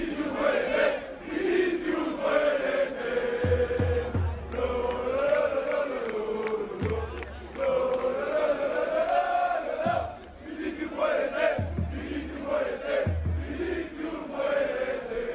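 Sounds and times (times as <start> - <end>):
large stadium crowd chanting insults in unison: 0.0 - 15.3
heavy low thumps: 3.4 - 4.9, 11.6 - 13.9.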